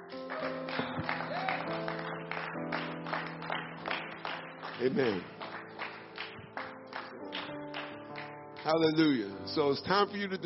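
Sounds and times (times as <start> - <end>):
sustained organ or keyboard chords: 0.0 - 10.4
audience applause: 0.1 - 8.3
speech: 4.8 - 5.4, 8.7 - 10.4.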